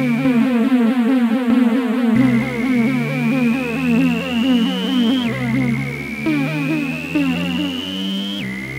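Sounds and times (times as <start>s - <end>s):
Casio SA-1 keyboard sound effect: 0.0s - 8.4s.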